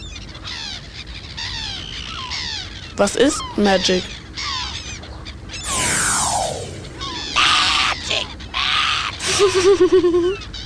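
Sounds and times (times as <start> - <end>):
speech: 3.0 - 4.2, 9.4 - 10.6
magic bird call in a children's story: 4.4 - 9.2
constant low rumble: 5.6 - 8.6
laughter: 9.2 - 10.4.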